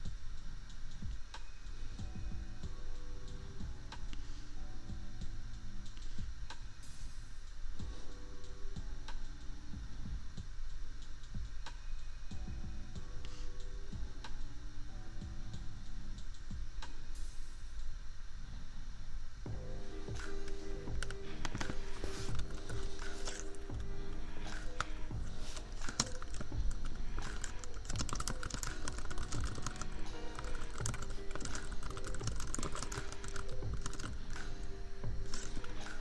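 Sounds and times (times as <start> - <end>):
laptop fan hum: 0.0 - 36.0
lofi beat: 0.0 - 36.0
keyboard tapping: 19.5 - 36.0.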